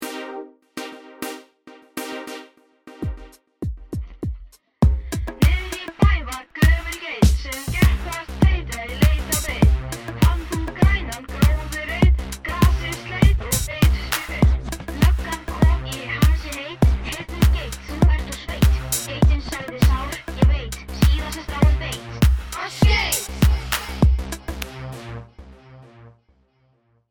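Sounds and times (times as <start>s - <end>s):
rapping: 5.4s - 24.0s.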